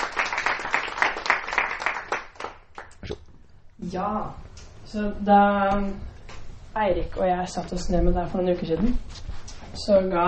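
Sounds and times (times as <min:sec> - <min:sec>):
audience applause: 0:00.0 - 0:03.0
speech: 0:03.8 - 0:06.2, 0:06.8 - 0:09.1, 0:09.8 - 0:10.2.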